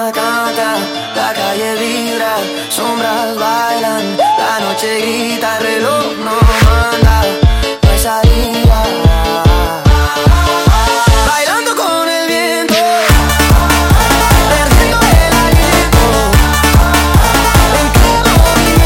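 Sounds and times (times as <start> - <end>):
sped up montagem music: 0.2 - 11.6, 12.7 - 18.8.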